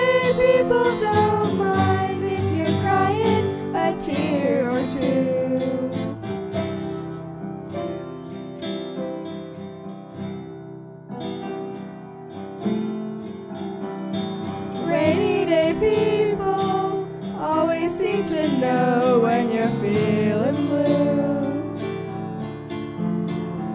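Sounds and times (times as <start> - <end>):
person singing: 0.0 - 6.2, 14.8 - 21.9
guitar: 0.0 - 23.7
piano: 0.0 - 23.7.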